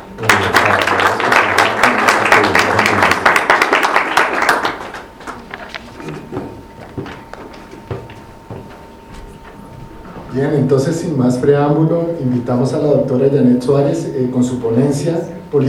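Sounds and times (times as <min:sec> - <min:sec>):
audience applause: 0:00.2 - 0:06.2
speech: 0:10.4 - 0:15.6.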